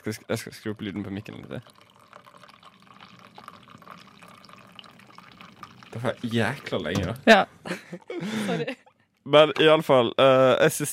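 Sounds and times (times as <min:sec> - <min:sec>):
speech: 0:00.0 - 0:02.0, 0:06.0 - 0:10.9
person urinating: 0:01.1 - 0:06.9
laughter: 0:07.7 - 0:08.8.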